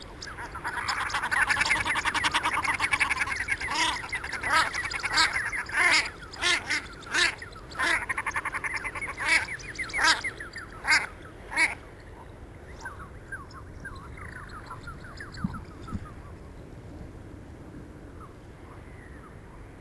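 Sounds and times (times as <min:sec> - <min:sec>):
common shelduck calling: 0:00.2 - 0:11.8.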